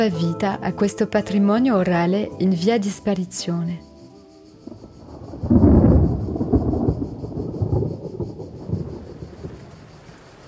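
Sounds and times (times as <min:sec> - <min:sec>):
speech: 0:00.0 - 0:03.9
rain: 0:04.6 - 0:10.4
thunder: 0:04.6 - 0:10.4.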